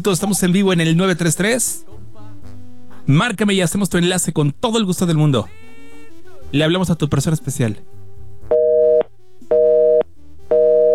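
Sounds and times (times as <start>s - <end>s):
speech: 0.0s - 2.0s, 3.1s - 5.6s, 6.5s - 8.0s
telephone busy signal: 8.5s - 10.9s.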